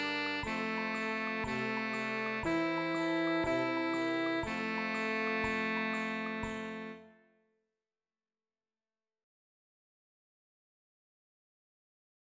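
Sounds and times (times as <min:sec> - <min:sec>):
alto saxophone: 0:00.0 - 0:07.2.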